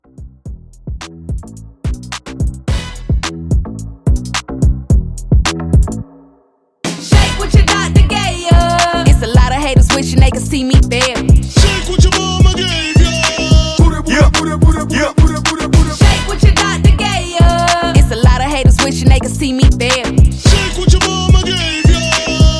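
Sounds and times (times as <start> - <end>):
hype dance music blend: 0.0 - 22.5.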